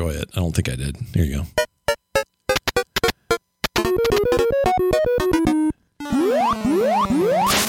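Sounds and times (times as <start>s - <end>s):
speech: 0.0s - 1.6s
arcade video game electronic bleeps: 1.6s - 7.6s
bouncy stepped chiptune melody: 1.6s - 7.6s
loud rising pitch sweeps: 4.3s - 7.6s.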